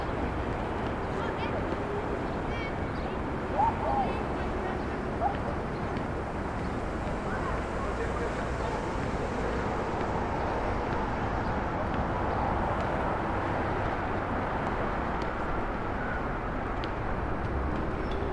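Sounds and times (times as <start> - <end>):
faint voices: 0.0 - 12.7
traffic and city noise from a rooftop in Brooklyn: 0.0 - 18.3.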